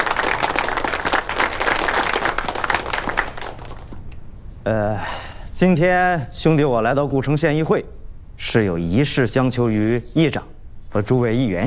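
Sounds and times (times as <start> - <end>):
group applause: 0.0 - 4.1
speech: 4.7 - 11.6.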